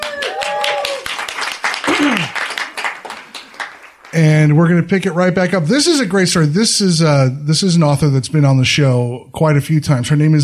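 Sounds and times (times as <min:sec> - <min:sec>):
applause: 0:00.0 - 0:04.4
speech: 0:04.2 - 0:10.4.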